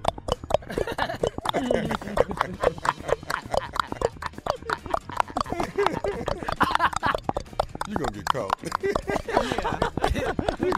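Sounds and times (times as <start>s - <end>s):
vocal imitation of a man in shoes running from the police: 0.0s - 10.7s
laughter: 0.6s - 10.7s.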